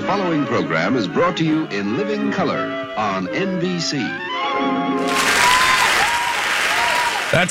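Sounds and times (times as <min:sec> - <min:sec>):
speech: 0:00.1 - 0:05.3, 0:07.3 - 0:07.5
audience applause at a live morning show: 0:05.0 - 0:07.5.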